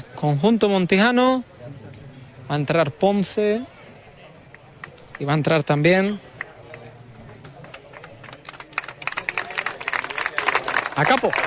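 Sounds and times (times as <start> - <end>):
speech: 0.2 - 1.5, 2.5 - 3.8, 5.2 - 6.3, 11.0 - 11.4
football crowd applause for substituted Montijo players: 4.5 - 11.4.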